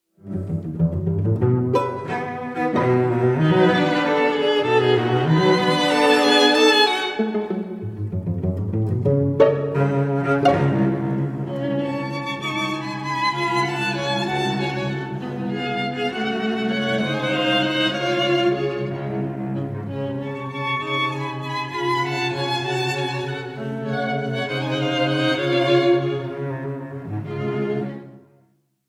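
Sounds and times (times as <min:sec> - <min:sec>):
string quartet playing in A minor: 0:00.2 - 0:28.3.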